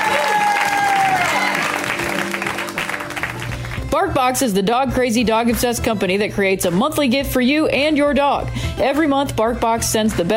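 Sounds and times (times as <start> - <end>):
cheering and whistles: 0.0 - 1.8
audience applause for a comedian: 0.0 - 3.8
speech: 4.0 - 10.3.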